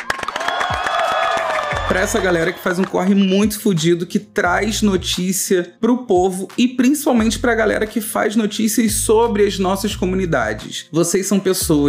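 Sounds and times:
group clapping: 0:00.0 - 0:03.4
people cheering and whooping: 0:00.0 - 0:03.4
speech: 0:02.0 - 0:11.8.

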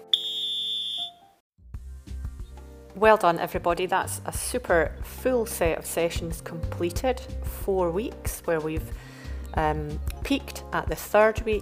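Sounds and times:
shrill whistle blast signalling end of running interval: 0:00.0 - 0:01.4
speech: 0:03.0 - 0:11.5.

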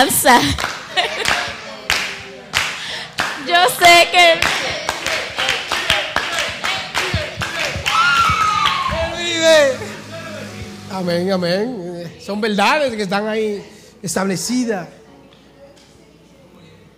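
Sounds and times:
speech: 0:00.0 - 0:00.8, 0:03.5 - 0:04.8, 0:10.9 - 0:15.0
laughter: 0:00.4 - 0:01.8
audience applause: 0:04.3 - 0:09.4.

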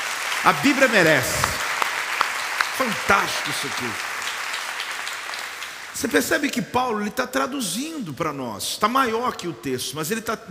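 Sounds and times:
audience applause: 0:00.0 - 0:06.2
speech: 0:00.4 - 0:01.5, 0:02.8 - 0:04.1, 0:06.0 - 0:10.4.

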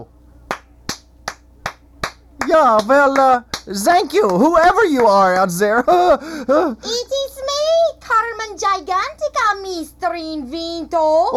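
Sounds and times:
slow handclaps: 0:00.5 - 0:05.6
speech: 0:02.5 - 0:07.2, 0:08.1 - 0:11.3.

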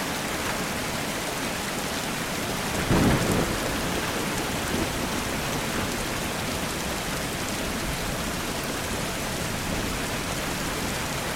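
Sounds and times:
steady rain pattering: 0:00.0 - 0:11.3
deep rumble of thunder: 0:02.7 - 0:06.0.

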